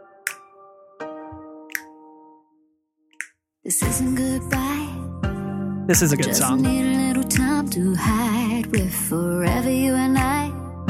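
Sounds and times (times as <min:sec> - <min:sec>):
finger snaps in a song: 0:00.2 - 0:00.6, 0:01.4 - 0:02.1, 0:03.1 - 0:03.4, 0:04.5 - 0:04.8, 0:07.3 - 0:07.6
speech: 0:03.7 - 0:05.1, 0:05.9 - 0:10.6.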